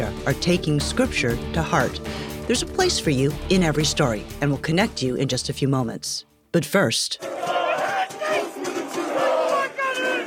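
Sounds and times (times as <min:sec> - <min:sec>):
speech: 0:00.2 - 0:07.3
protesters chanting in unison in Turkey: 0:07.2 - 0:10.2.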